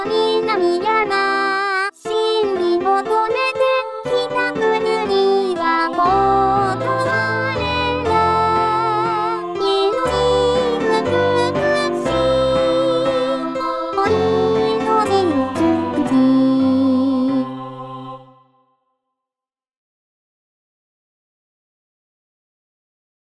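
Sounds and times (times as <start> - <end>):
vocaloid synthesized singing voice: 0.0 - 18.4.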